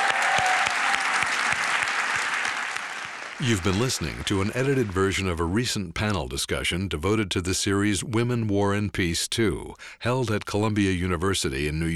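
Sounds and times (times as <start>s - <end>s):
audience applause for panelists: 0.0s - 5.2s
speech: 3.4s - 11.9s.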